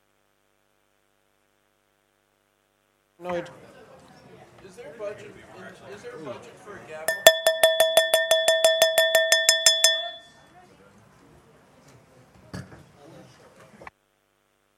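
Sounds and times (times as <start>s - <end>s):
bell ringing: 7.1s - 10.4s.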